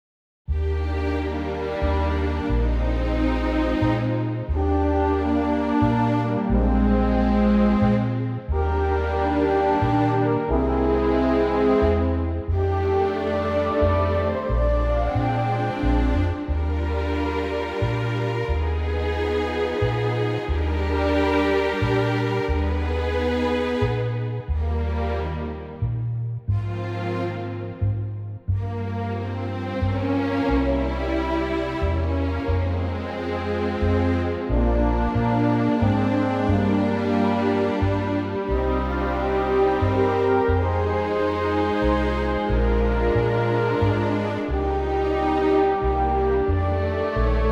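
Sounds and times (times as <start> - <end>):
orchestra: 0.5 - 47.4.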